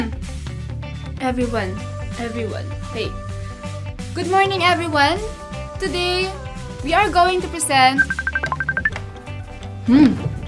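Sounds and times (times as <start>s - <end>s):
speech: 1.2s - 3.3s, 4.2s - 8.2s, 9.9s - 10.2s
electronic phone ringtone beeps for an incoming call: 8.0s - 9.0s.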